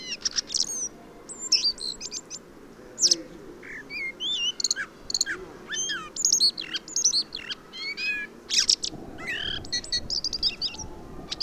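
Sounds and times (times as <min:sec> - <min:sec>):
common blackbird singing: 0:00.0 - 0:11.4.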